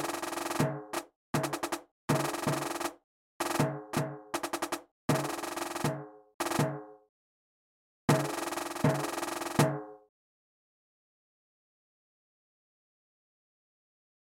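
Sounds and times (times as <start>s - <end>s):
Spielmannszug marching band percussion: 0.0s - 6.8s, 8.1s - 9.9s.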